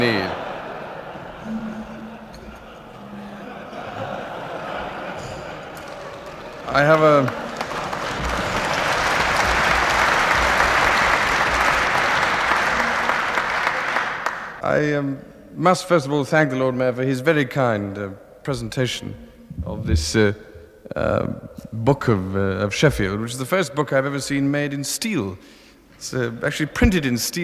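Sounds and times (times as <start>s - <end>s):
laughter: 0.0s - 14.0s
audience applauding: 4.0s - 14.6s
speech: 6.8s - 7.4s, 14.7s - 27.4s.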